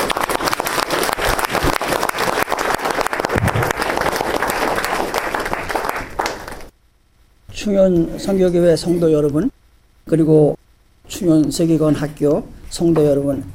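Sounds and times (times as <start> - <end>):
audience applause welcoming a speaker: 0.0 - 6.7
speech: 7.6 - 9.5, 10.1 - 13.5.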